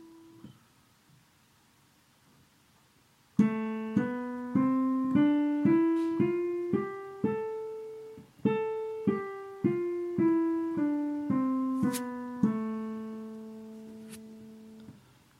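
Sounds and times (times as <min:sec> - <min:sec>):
minor scales exercises: 0:03.4 - 0:15.0.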